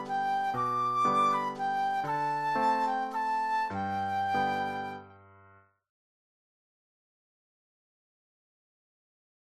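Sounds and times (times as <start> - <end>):
flute solo: 0.0 - 5.1.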